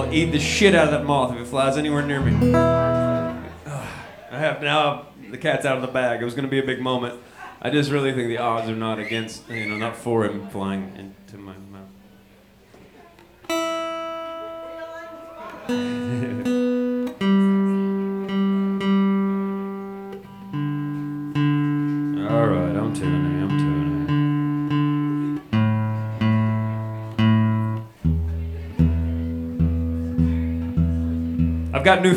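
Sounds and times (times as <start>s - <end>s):
speech: 0.0s - 3.1s, 4.3s - 11.9s, 15.7s - 16.6s, 31.9s - 32.1s
stringed instrument being tuned: 0.0s - 3.8s, 13.5s - 32.1s
laughter: 0.0s - 5.0s, 8.5s - 10.6s, 14.9s - 17.1s.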